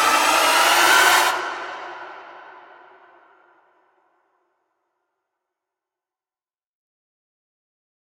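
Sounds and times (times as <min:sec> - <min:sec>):
horror movie strings: 0:00.0 - 0:03.8.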